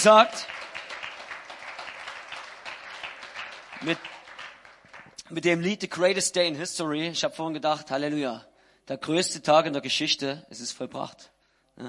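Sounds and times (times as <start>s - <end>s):
speech: 0.0s - 0.6s, 3.8s - 4.1s, 5.3s - 11.8s
audience applause: 0.0s - 5.2s.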